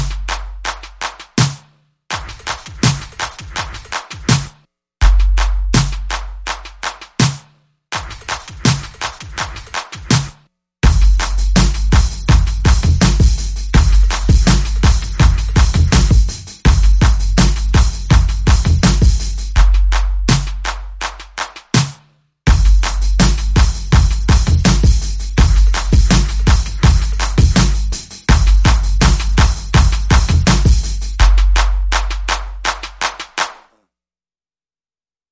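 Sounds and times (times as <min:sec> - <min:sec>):
drums and percussion: 0:00.0 - 0:33.7.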